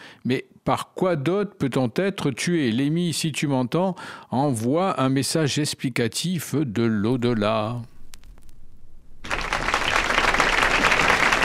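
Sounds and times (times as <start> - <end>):
speech: 0.2 - 7.9
crowd audience applause: 9.2 - 11.4.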